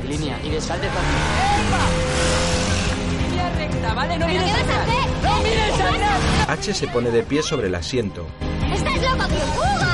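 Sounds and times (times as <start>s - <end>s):
speech: 0.2s - 2.6s, 3.8s - 9.8s
motorcycle engine droning in a film scene: 0.8s - 3.4s.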